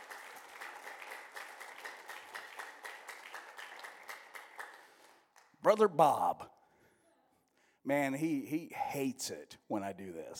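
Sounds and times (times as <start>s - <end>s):
crowd applauding: 0.0s - 5.2s
speech: 5.6s - 6.5s, 7.9s - 10.3s.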